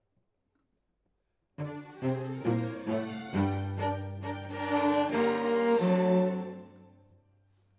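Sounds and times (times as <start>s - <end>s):
cello solo: 1.6s - 7.1s.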